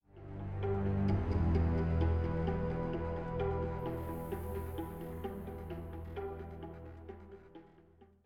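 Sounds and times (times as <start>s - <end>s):
tension music: 0.1s - 8.1s.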